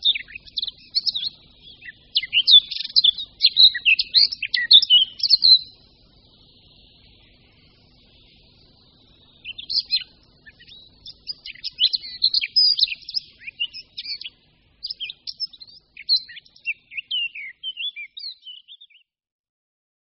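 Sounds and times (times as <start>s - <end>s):
Eurasian blackcap singing: 0.0s - 5.8s, 9.4s - 19.0s.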